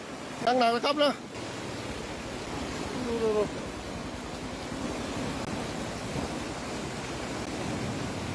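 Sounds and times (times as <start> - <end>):
flash flood water surging into a village after heavy rain: 0.0 - 8.3
speech: 0.4 - 1.4, 3.1 - 3.6
person's voice: 2.9 - 3.6.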